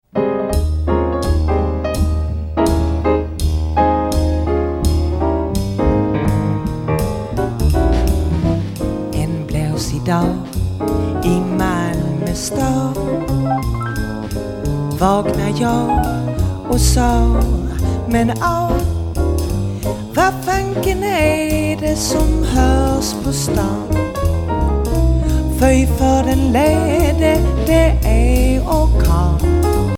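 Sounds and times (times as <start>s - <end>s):
jazz music: 0.1s - 29.9s.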